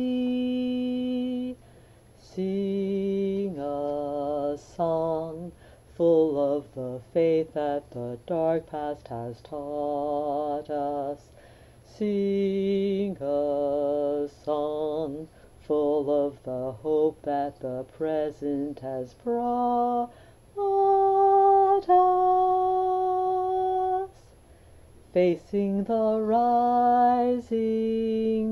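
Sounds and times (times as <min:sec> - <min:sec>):
tenor singing a hymn: 0:00.0 - 0:01.6, 0:02.2 - 0:24.3, 0:25.1 - 0:28.4.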